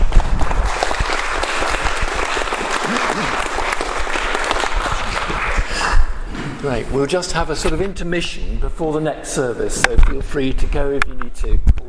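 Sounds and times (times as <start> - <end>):
audience applause: 0.0 - 6.1
speech: 6.7 - 11.7.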